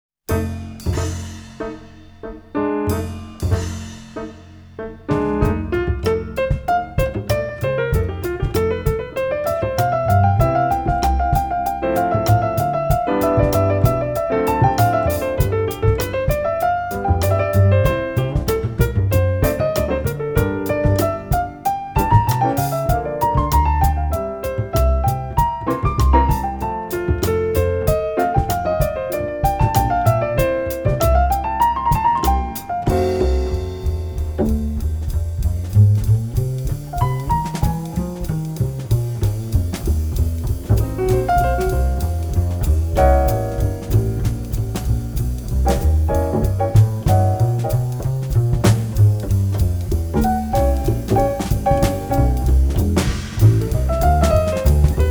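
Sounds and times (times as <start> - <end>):
concerto allegro in F major: 1.6 - 55.0.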